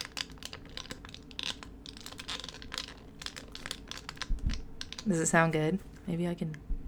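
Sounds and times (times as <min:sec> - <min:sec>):
crinkling plastic dog toy being squeezed: 0:00.0 - 0:05.1
speech: 0:05.0 - 0:06.7.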